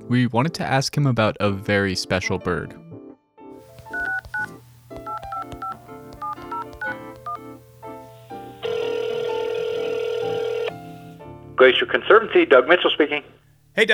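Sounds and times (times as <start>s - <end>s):
speech: 0.1s - 2.8s, 11.6s - 13.9s
telephone dialing: 3.6s - 11.0s.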